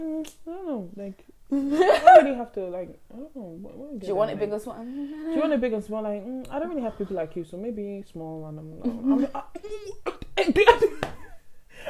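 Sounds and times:
speech: 0:01.0 - 0:11.2
choking coughs: 0:09.2 - 0:11.0.

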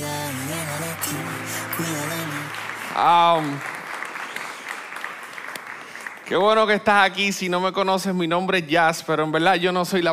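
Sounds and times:
audience applause: 0:00.1 - 0:06.8
speech: 0:01.8 - 0:02.2, 0:03.0 - 0:03.7, 0:06.3 - 0:10.1.

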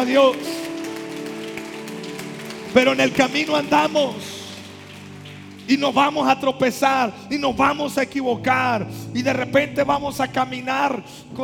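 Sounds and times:
speech: 0:00.0 - 0:00.5, 0:02.8 - 0:04.3, 0:05.7 - 0:11.4
audience applause: 0:00.0 - 0:06.4.

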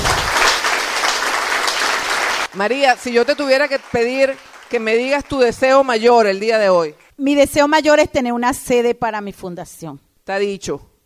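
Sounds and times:
audience applause: 0:00.0 - 0:06.0
speech: 0:02.6 - 0:10.9.

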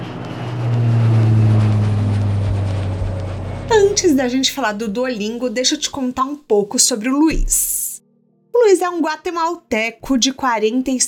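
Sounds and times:
small jet plane taking off: 0:00.0 - 0:04.7
speech: 0:04.0 - 0:07.8, 0:08.7 - 0:11.0.

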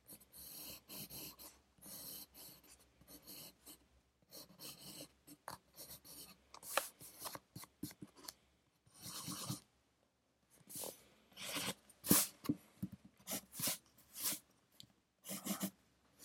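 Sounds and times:
pencil scratching across paper while writing: 0:00.0 - 0:08.3, 0:08.9 - 0:09.7, 0:10.7 - 0:12.4, 0:13.2 - 0:14.4, 0:15.2 - 0:15.8.

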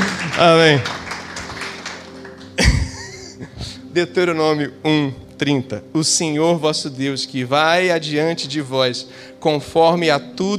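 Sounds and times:
laughter: 0:00.0 - 0:01.8, 0:02.6 - 0:03.6
audience applauding: 0:00.0 - 0:03.0
speech: 0:00.4 - 0:01.0, 0:03.4 - 0:10.5.

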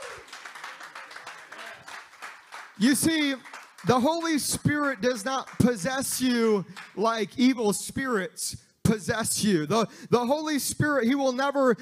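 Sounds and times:
audience hand clapping in praise: 0:00.0 - 0:07.1
speech: 0:02.8 - 0:11.8.

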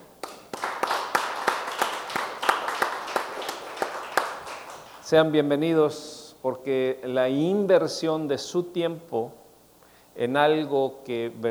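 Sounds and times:
audience applause: 0:00.2 - 0:05.1
speech: 0:05.1 - 0:09.4, 0:10.2 - 0:11.4.

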